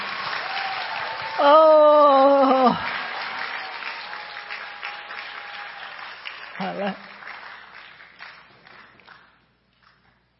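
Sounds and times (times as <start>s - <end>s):
audience applauding to welcome a guest: 0.0s - 10.2s
speech: 1.4s - 2.9s, 6.7s - 7.1s.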